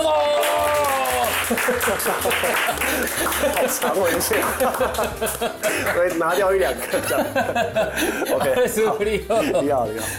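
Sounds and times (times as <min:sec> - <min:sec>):
audience applause on a televised cooking show: 0:00.0 - 0:06.4
laughter: 0:00.9 - 0:10.1
speech: 0:01.5 - 0:10.1.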